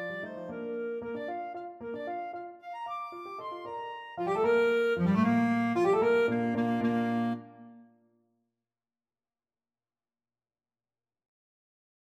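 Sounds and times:
clarinet sonatina: 0:00.0 - 0:07.8.

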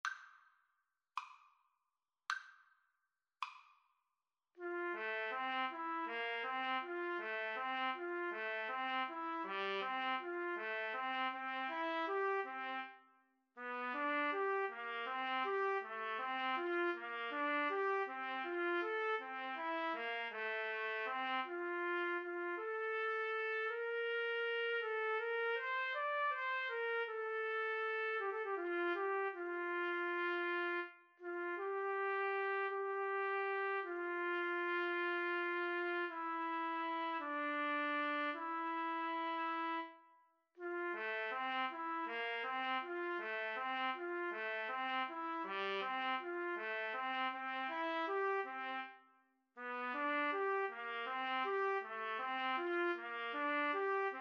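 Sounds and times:
trumpet duet: 0:04.6 - 0:13.0, 0:13.6 - 0:40.0, 0:40.6 - 0:49.0, 0:49.6 - 0:54.1.

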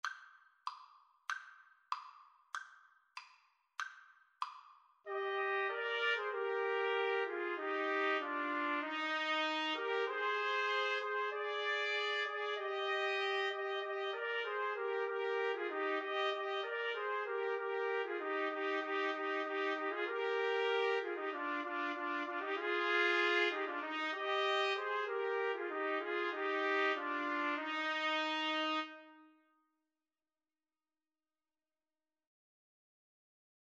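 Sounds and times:
trumpet trio playing: 0:05.1 - 0:29.4.

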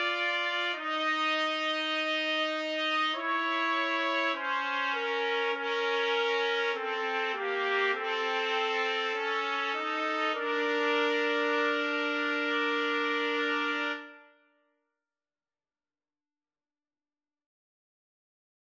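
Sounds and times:
trumpet trio karaoke track: 0:00.0 - 0:14.3.

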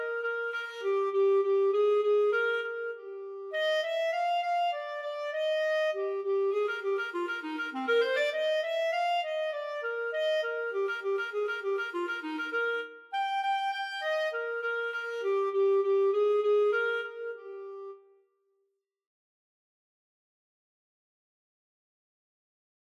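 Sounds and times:
clarinet duet playing an allegro: 0:00.0 - 0:18.1.

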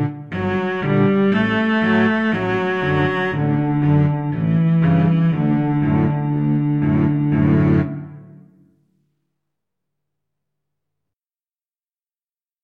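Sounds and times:
two basses: 0:00.0 - 0:08.4
two cellos: 0:00.0 - 0:08.7.

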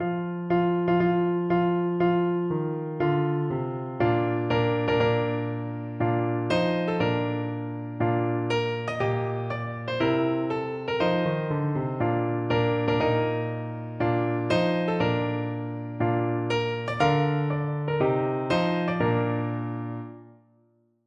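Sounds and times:
piano: 0:00.0 - 0:20.9.

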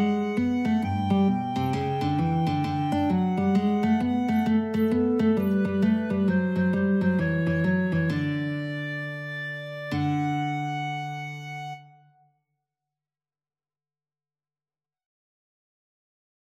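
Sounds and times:
guitar and clarinet duet playing boogie: 0:00.0 - 0:12.2.

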